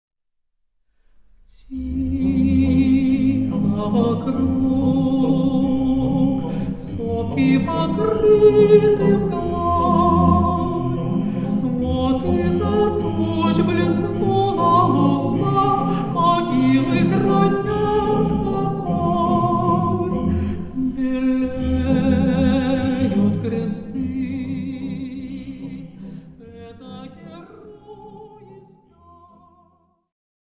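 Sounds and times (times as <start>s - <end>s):
choir singing: 1.5s - 29.9s.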